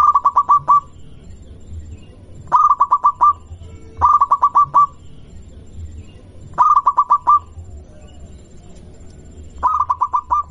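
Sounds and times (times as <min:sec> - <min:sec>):
zebra dove cooing song: 0:00.0 - 0:01.0, 0:02.4 - 0:05.1, 0:06.5 - 0:10.4.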